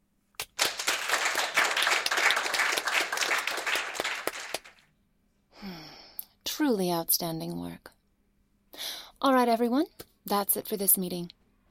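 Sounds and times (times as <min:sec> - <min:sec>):
small group of meeting attendees applauding: 0:00.4 - 0:04.8
speech: 0:06.6 - 0:07.9, 0:09.2 - 0:11.4.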